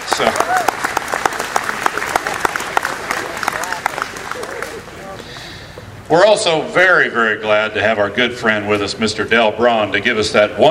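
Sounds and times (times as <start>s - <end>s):
audience applause: 0.0s - 5.5s
speech: 0.2s - 0.9s, 6.1s - 10.6s.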